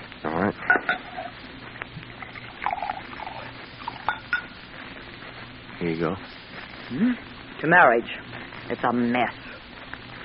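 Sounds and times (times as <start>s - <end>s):
bourbon being poured into a glass: 2.2s - 4.5s
speech: 6.0s - 9.4s.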